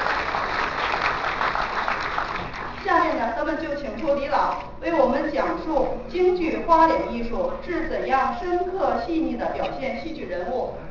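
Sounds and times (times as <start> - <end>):
audience applause welcoming performers at a Peking opera event: 0.0 - 2.8
speech: 3.4 - 10.8.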